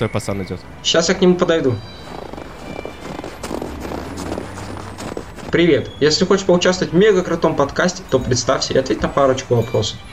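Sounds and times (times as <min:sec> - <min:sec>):
speech: 0:00.0 - 0:02.0, 0:05.5 - 0:10.1
traffic: 0:00.0 - 0:10.1
footsteps walking along a street: 0:02.0 - 0:05.9.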